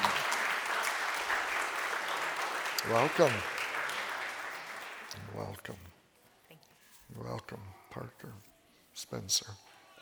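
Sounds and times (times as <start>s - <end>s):
church congregation at Salem Reformed Church applauding its new members: 0.0s - 5.8s
speech: 2.8s - 3.5s, 5.4s - 5.9s, 7.1s - 9.7s.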